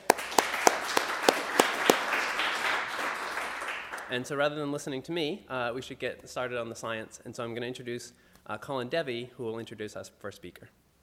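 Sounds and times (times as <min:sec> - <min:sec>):
audience applause: 0:00.0 - 0:04.1
speech: 0:04.1 - 0:10.8.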